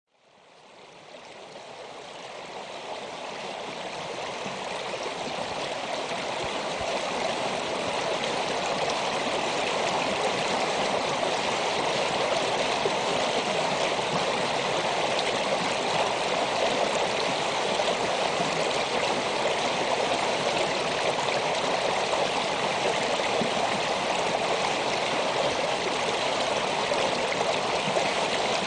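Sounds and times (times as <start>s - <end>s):
flowing stream: 0.1s - 28.6s.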